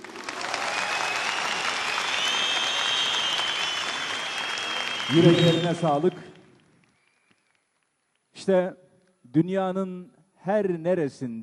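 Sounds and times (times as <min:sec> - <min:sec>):
large audience applause: 0:00.0 - 0:07.8
speech: 0:05.1 - 0:06.3, 0:08.4 - 0:11.4.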